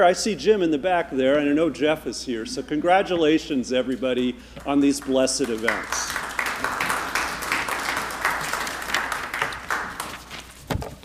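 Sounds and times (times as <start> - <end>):
speech: 0.0 - 6.7
crowd applauding: 4.6 - 10.4.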